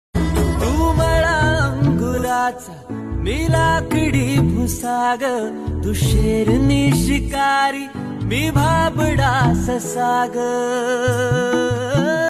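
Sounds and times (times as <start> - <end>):
Marathi love song: 0.2 - 12.2.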